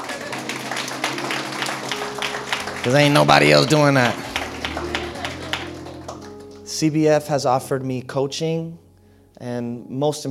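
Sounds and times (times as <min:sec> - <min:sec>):
audience clapping: 0:00.0 - 0:06.8
murmur of voices: 0:02.6 - 0:06.3
speech: 0:02.8 - 0:04.2, 0:06.8 - 0:08.8, 0:09.4 - 0:10.2.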